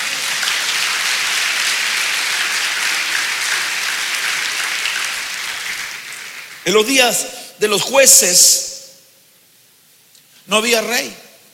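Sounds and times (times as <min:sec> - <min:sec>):
audience applause: 0:00.0 - 0:07.0
speech: 0:06.7 - 0:08.6, 0:10.5 - 0:11.2.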